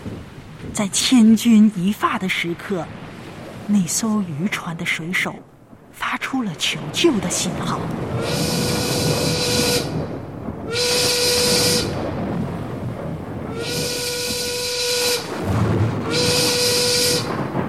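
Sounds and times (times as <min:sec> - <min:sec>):
speech: 0:00.8 - 0:03.0, 0:03.7 - 0:05.5, 0:06.2 - 0:10.0
warning siren whistle of a sea rescue team: 0:08.1 - 0:12.1, 0:13.5 - 0:17.5.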